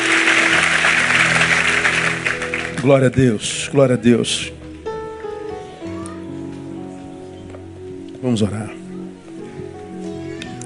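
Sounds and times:
crowd applauding: 0:00.0 - 0:03.4
speech: 0:02.8 - 0:04.6, 0:08.2 - 0:08.8.

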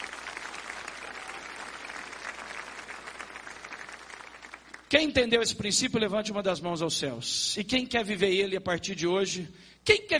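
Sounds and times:
audience applause: 0:00.0 - 0:04.9
speech: 0:04.9 - 0:10.1.

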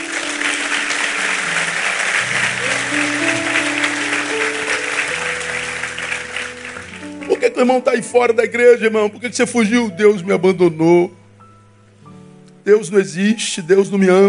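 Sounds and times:
audience applause: 0:00.0 - 0:07.8
sustained organ or keyboard chords: 0:00.0 - 0:12.8
speech: 0:07.6 - 0:11.2, 0:12.7 - 0:14.2.

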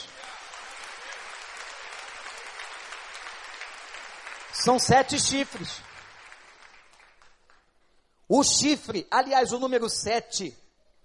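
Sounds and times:
audience applause: 0:00.0 - 0:07.6
speech: 0:04.6 - 0:05.9, 0:08.3 - 0:10.6.

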